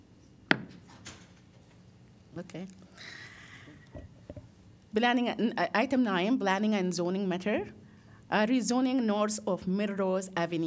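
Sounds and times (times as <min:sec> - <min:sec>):
gavel strikes closing public comment: 0:00.5 - 0:00.8
speech: 0:02.4 - 0:03.3, 0:04.9 - 0:10.6.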